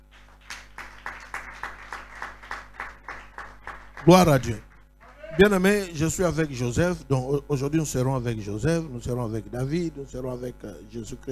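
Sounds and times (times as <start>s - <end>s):
church congregation clapping in praise: 0.0s - 5.7s
low hum: 2.7s - 11.2s
speech: 4.0s - 4.7s, 5.4s - 11.2s.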